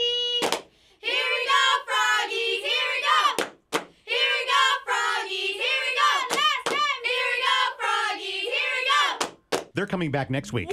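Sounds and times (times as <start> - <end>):
cheerleaders shouting a rhythmic cheer: 0.3 - 3.4, 4.1 - 9.4
sharp claps: 0.4 - 0.7, 3.3 - 4.0, 6.2 - 6.9, 9.2 - 9.8
speech: 9.8 - 10.7.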